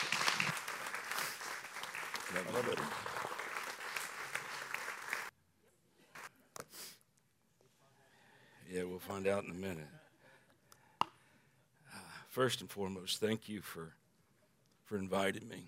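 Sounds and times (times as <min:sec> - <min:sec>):
audience clapping welcoming a guest speaker at a church service: 0:00.0 - 0:05.3
speech: 0:02.3 - 0:03.2, 0:08.7 - 0:10.0, 0:12.4 - 0:14.0, 0:14.9 - 0:15.6.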